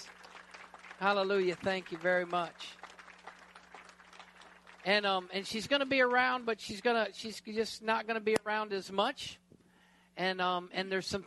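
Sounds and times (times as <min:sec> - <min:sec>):
audience applauding: 0:00.0 - 0:05.2
speech: 0:01.0 - 0:02.8, 0:04.8 - 0:09.4, 0:10.2 - 0:11.2.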